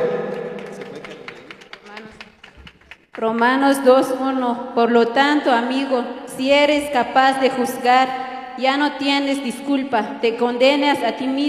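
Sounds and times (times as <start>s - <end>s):
audience applause: 0.0s - 3.2s
speech: 3.2s - 11.4s.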